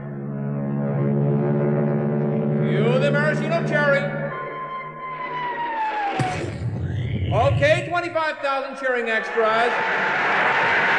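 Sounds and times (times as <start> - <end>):
air force planes flying overhead: 0.0 - 6.2
speech: 3.1 - 4.2, 7.3 - 10.8.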